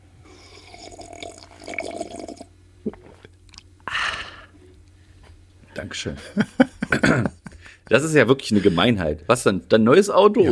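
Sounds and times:
sipping coffee: 0.3 - 3.7
speech: 5.8 - 10.5
laughter: 6.2 - 7.7.

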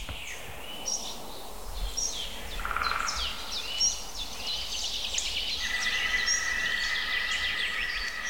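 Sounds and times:
chorus of chirping twittering songbirds: 0.0 - 8.2
green woodpecker calling: 2.6 - 4.0, 5.2 - 8.2.

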